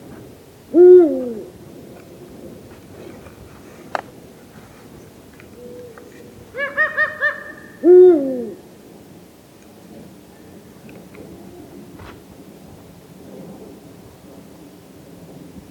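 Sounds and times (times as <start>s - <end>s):
Eurasian eagle-owl Bubo bubo hooting: 0.7s - 1.5s, 5.5s - 8.6s.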